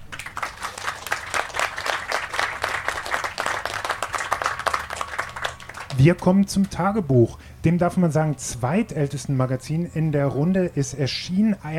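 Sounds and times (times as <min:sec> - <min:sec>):
audience applause: 0:00.0 - 0:06.1
speech: 0:06.0 - 0:11.7.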